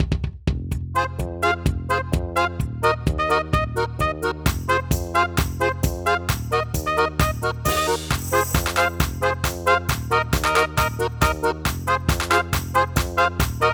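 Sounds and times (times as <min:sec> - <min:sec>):
cossack dance music: 0:01.0 - 0:13.7.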